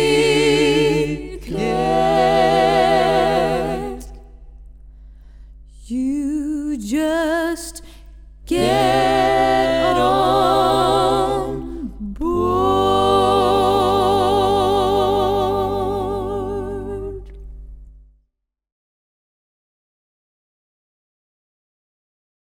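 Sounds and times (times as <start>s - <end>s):
gospel music: 0.0s - 6.7s, 8.5s - 17.6s.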